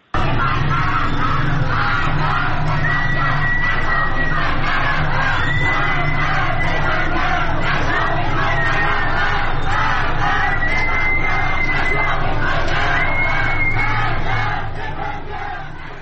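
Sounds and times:
laughter: 0:00.0 - 0:15.9
protesters chanting slogans on Jamalzadeh Street in Tehran: 0:00.0 - 0:15.9.

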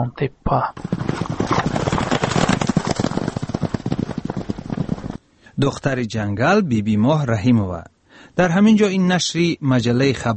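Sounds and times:
speech: 0:00.0 - 0:02.0, 0:05.6 - 0:10.3
forest ranger's swift horse trotting near Qurghonteppa, Tajikistan: 0:00.8 - 0:05.2.

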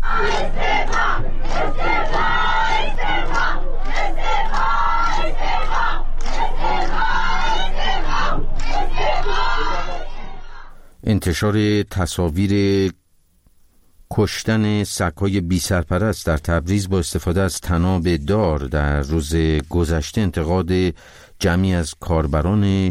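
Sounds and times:
protest crowd chanting slogans: 0:00.0 - 0:10.8
speech: 0:11.1 - 0:13.0, 0:14.1 - 0:22.9.

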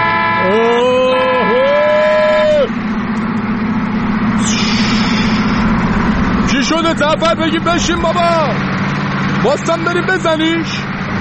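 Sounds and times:
vehicle horn honking: 0:00.0 - 0:01.3
low engine rumble: 0:00.0 - 0:11.1
speech: 0:07.0 - 0:08.8, 0:09.4 - 0:11.0.

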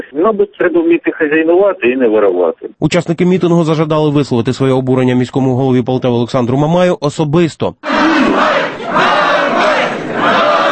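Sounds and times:
speech: 0:00.1 - 0:10.7
protesters chanting slogans: 0:07.8 - 0:10.7.

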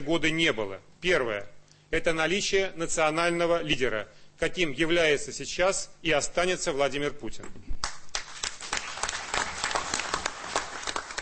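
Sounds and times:
speech: 0:00.0 - 0:07.9
stormy applause: 0:08.1 - 0:11.2.

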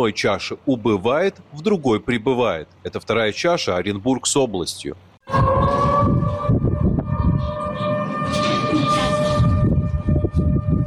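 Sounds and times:
speech: 0:00.0 - 0:06.4
civil defense sirens wailing in a city: 0:05.2 - 0:10.8.

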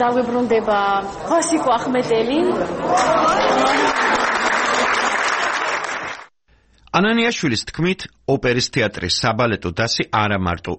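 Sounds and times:
speech: 0:00.0 - 0:03.8, 0:06.9 - 0:10.7
audience ovation in an opera theatre hall: 0:02.9 - 0:06.3.

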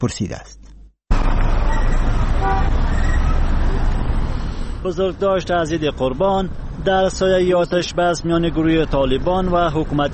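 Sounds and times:
speech: 0:00.0 - 0:00.7, 0:04.8 - 0:10.1
busy street traffic: 0:00.7 - 0:10.1
car horn toots: 0:01.6 - 0:03.3.

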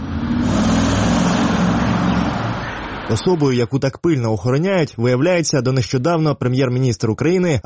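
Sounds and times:
two cars pulling up at building exit: 0:00.0 - 0:03.6
speech: 0:03.1 - 0:07.6.

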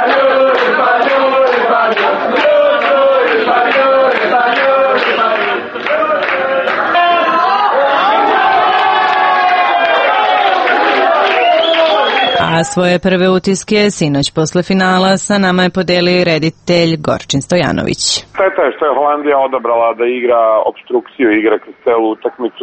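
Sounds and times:
Spanish fans in cafés in Serbia chanting and shouting: 0:00.0 - 0:13.0
speech: 0:12.6 - 0:22.6.

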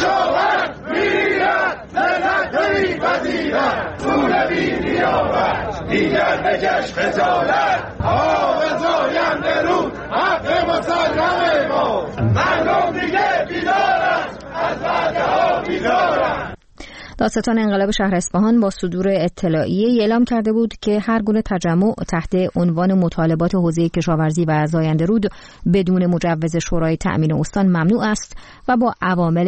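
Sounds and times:
crowd chanting and shouting: 0:00.0 - 0:16.6
speech: 0:03.1 - 0:13.7, 0:17.2 - 0:29.4.

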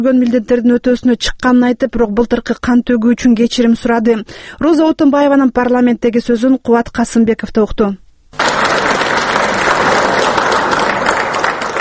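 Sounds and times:
speech: 0:00.0 - 0:08.6
loud dense applause in Kyrgyzstan's parliament greeting President Roza Otunbayeva: 0:08.4 - 0:11.7.

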